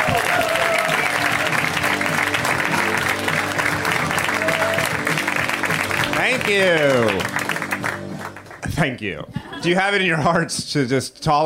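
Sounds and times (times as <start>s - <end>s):
comedy show audience applauding and cheering: 0.0s - 8.7s
speech: 6.5s - 7.3s, 8.8s - 11.4s.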